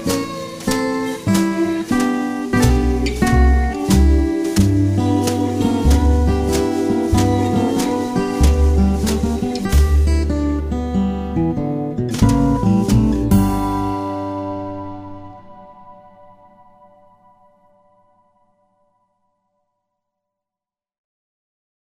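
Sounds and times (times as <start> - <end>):
acoustic rag: 0.0 - 15.7.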